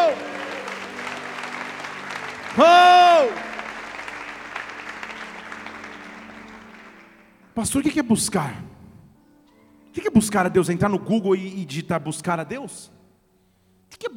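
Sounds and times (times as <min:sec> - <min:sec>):
audience applause: 0:00.0 - 0:07.5
speech: 0:02.6 - 0:03.5, 0:07.6 - 0:08.8, 0:10.2 - 0:13.0, 0:13.9 - 0:14.1.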